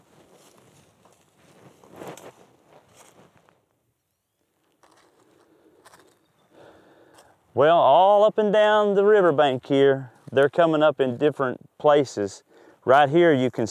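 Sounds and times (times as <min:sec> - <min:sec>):
faint footsteps walking along a riverbank: 0:00.0 - 0:03.8, 0:04.6 - 0:07.6, 0:09.4 - 0:11.3
speech: 0:07.6 - 0:13.7.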